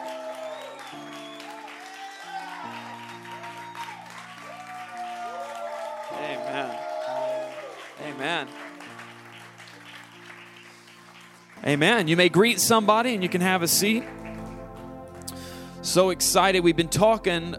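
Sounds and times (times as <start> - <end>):
audience applauding a speaker welcomed to the stage: 0.0 - 15.3
speech: 6.5 - 6.8, 8.1 - 8.6, 11.6 - 14.2, 15.9 - 17.5
sustained musical chords: 11.6 - 17.5.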